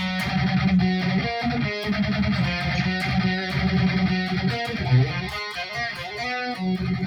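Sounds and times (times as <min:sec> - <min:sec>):
distorted electric guitar riff from a song: 0:00.0 - 0:07.0.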